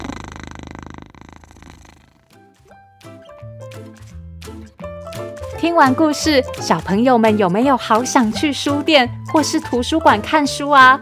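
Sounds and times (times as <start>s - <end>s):
cat purring loudly: 0.0s - 2.5s
speech: 5.6s - 11.0s.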